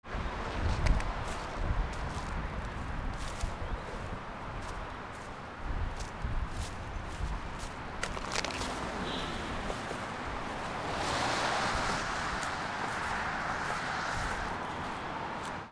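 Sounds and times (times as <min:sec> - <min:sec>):
footsteps: 0:00.0 - 0:15.7.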